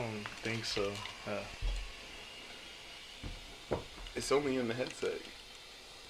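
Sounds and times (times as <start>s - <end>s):
radiator hissing: 0.0s - 6.0s
speech: 0.2s - 1.8s, 3.2s - 5.4s
dull low thumps: 3.2s - 4.1s.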